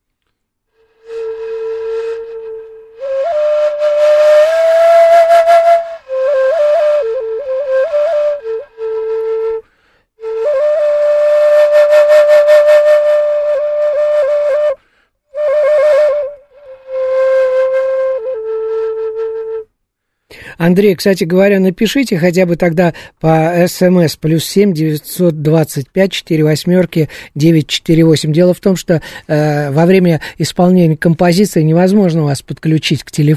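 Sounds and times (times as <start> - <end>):
shakuhachi bamboo flute playing slow breathy phrases: 0.7 - 19.7
speech: 20.7 - 33.3.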